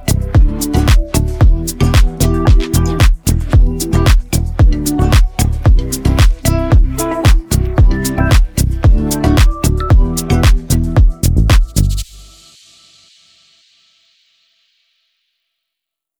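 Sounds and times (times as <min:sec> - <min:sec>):
instrumental music: 0:00.0 - 0:12.8.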